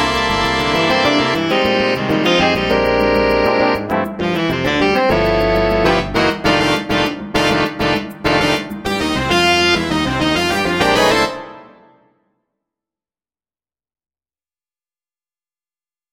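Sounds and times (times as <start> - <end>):
drum set playing along to funk: 0.0 - 11.8.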